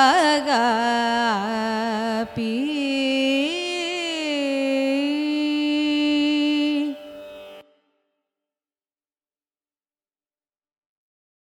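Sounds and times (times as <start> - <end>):
carnatic music in raga kapi: 0.0 - 8.1.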